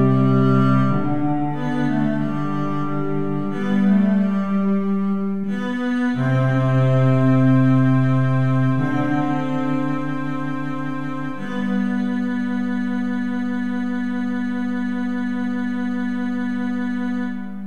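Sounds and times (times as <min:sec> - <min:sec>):
Stella strings: 0:00.0 - 0:17.6.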